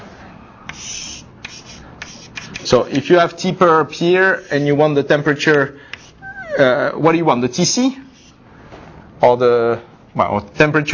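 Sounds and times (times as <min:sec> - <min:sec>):
marker squeaking on a board drawing a diagram: 0:00.7 - 0:03.1, 0:04.0 - 0:06.8, 0:08.0 - 0:08.4
speech: 0:02.7 - 0:05.9, 0:06.6 - 0:08.0, 0:09.2 - 0:10.9.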